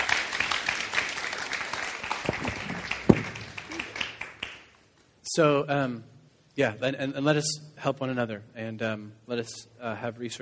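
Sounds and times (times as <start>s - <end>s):
audience applauding: 0.0s - 4.7s
speech: 5.4s - 10.3s.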